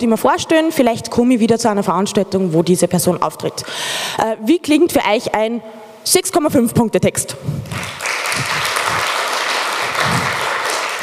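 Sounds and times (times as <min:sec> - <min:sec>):
speech: 0:00.0 - 0:08.6
audience clapping: 0:07.6 - 0:11.0.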